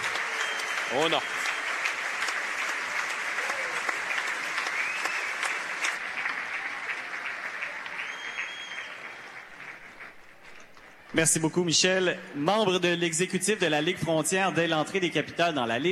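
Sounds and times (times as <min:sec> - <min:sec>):
standing ovation applause from a large crowd: 0:00.0 - 0:12.1
speech: 0:00.9 - 0:01.4, 0:11.2 - 0:15.9
faint whistles: 0:04.7 - 0:05.3, 0:08.0 - 0:09.0.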